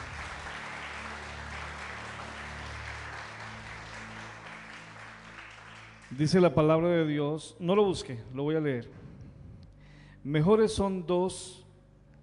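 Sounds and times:
audience applause: 0:00.0 - 0:06.4
speech: 0:06.1 - 0:09.0, 0:10.2 - 0:11.6.

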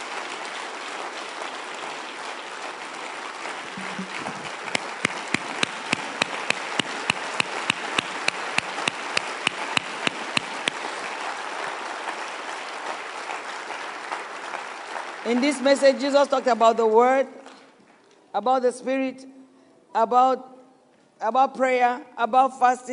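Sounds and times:
audience clapping: 0:00.0 - 0:18.2
speech: 0:15.3 - 0:17.4, 0:18.3 - 0:19.3, 0:19.9 - 0:20.5, 0:21.2 - 0:22.9.

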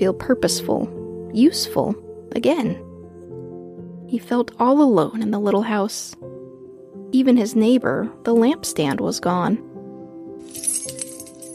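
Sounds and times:
speech: 0:00.0 - 0:02.9, 0:04.1 - 0:06.3, 0:07.1 - 0:09.7
keys jingling: 0:10.4 - 0:11.5.

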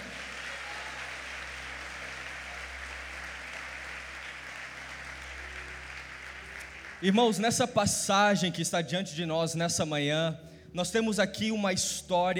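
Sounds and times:
audience applause: 0:00.0 - 0:07.2
speech: 0:07.0 - 0:12.3.

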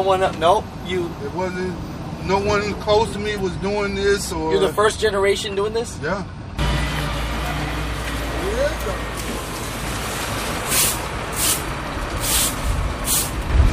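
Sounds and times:
speech: 0:00.0 - 0:06.4, 0:08.4 - 0:09.1
Mack tractor-trailer truck idling: 0:06.6 - 0:13.5
Mack tractor-trailer truck air brakes hissing: 0:10.7 - 0:13.4.

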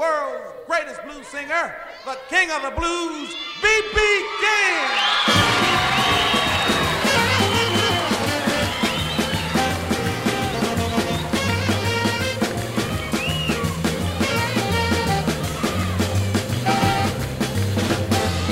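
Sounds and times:
speech: 0:00.8 - 0:05.3
audience cheering: 0:01.8 - 0:18.4
audience applause: 0:04.3 - 0:18.4.

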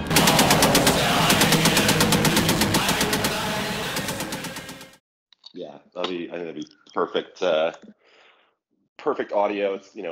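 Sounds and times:
machine gun firing rapid bursts: 0:00.0 - 0:05.0
speech: 0:06.3 - 0:08.0, 0:09.0 - 0:10.0.

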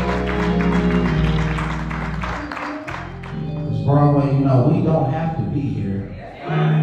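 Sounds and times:
audience hand clapping in praise: 0:00.0 - 0:03.8
speech: 0:04.0 - 0:06.7.

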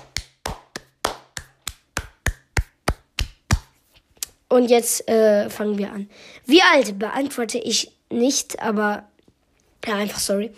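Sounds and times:
hand claps: 0:00.0 - 0:03.8
speech: 0:04.5 - 0:09.1, 0:09.8 - 0:10.5.

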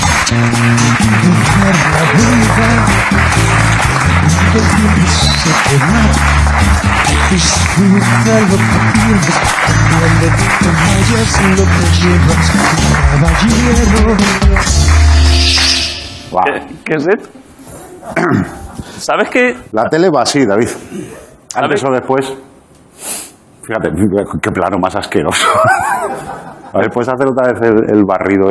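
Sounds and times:
audience applause: 0:00.0 - 0:15.8
speech: 0:00.3 - 0:15.7, 0:16.3 - 0:17.4, 0:18.1 - 0:23.1, 0:23.7 - 0:28.4
laughter: 0:25.4 - 0:27.0.

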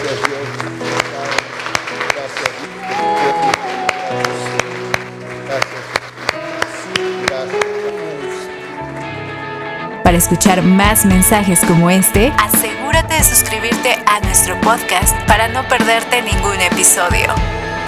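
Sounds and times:
audience applause: 0:00.0 - 0:08.2
speech: 0:10.2 - 0:17.6.

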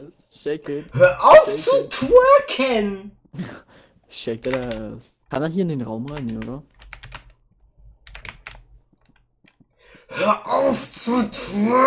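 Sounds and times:
speech: 0:00.4 - 0:06.7, 0:10.1 - 0:11.8
computer keyboard typing: 0:04.4 - 0:04.9, 0:06.1 - 0:07.4, 0:08.0 - 0:09.6.

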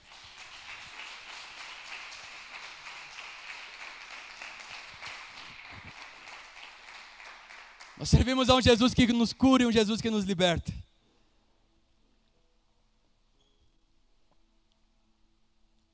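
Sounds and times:
audience applause: 0:00.0 - 0:09.2
speech: 0:08.0 - 0:10.8.

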